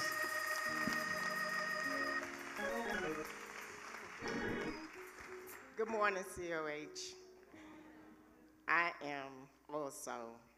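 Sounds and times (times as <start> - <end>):
audience applause: 0.0 - 5.8
sustained musical tones: 0.0 - 5.8
speech: 5.8 - 7.2, 8.7 - 10.5.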